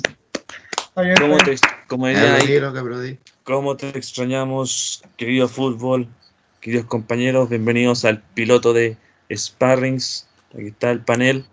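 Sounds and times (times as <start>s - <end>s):
applause: 0.0s - 2.5s
speech: 1.0s - 11.5s.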